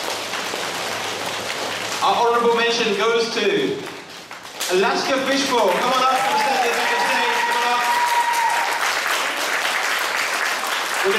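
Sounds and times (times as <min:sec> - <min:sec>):
audience applause: 0:00.0 - 0:02.4, 0:03.8 - 0:11.1
speech: 0:02.0 - 0:03.9, 0:04.7 - 0:07.0.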